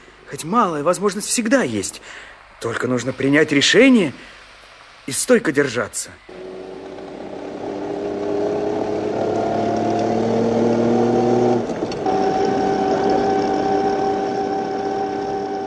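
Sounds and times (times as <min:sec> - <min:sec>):
speech: 0:00.3 - 0:04.4, 0:05.1 - 0:06.5
car engine struggling along a washed-out muddy road: 0:06.3 - 0:15.6.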